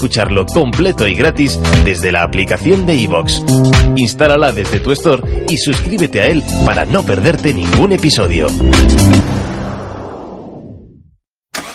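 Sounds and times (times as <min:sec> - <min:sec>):
speech: 0:00.0 - 0:09.5
whooshing rush of a car: 0:08.7 - 0:11.1
car setting off on its journey: 0:11.6 - 0:11.7.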